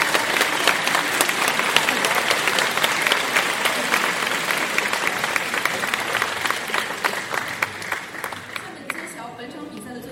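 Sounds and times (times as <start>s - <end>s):
audience applause: 0.0s - 9.2s.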